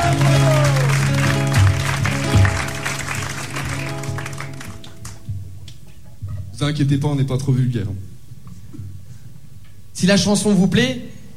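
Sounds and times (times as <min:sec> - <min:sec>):
applause: 0:00.0 - 0:05.3
speech: 0:06.7 - 0:08.1, 0:10.0 - 0:11.2.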